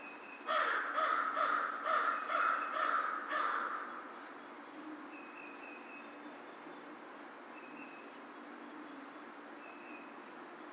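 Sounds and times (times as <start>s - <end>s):
American crow cawing: 0.5s - 3.9s.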